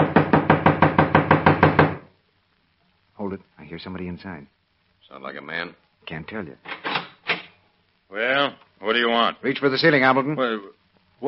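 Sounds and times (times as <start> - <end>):
firm knocking on a door: 0.0 - 2.1
speech: 3.3 - 6.8, 8.1 - 11.2.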